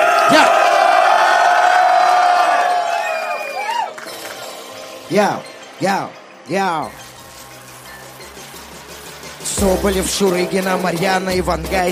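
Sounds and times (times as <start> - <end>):
rising-and-falling whoops: 0.0 - 4.0
crowd cheering and shouting: 0.0 - 4.5
speech: 5.1 - 7.0, 9.6 - 11.8.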